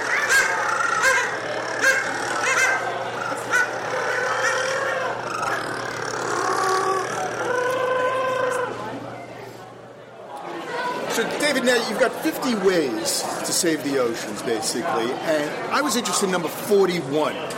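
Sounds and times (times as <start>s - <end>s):
penguin colony calling: 0.0s - 8.8s
speech: 11.6s - 17.5s.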